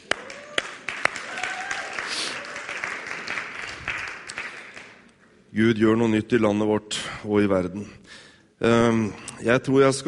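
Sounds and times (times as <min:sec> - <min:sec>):
crowd applauding: 0:00.0 - 0:05.1
speech: 0:05.5 - 0:08.0, 0:08.6 - 0:10.0.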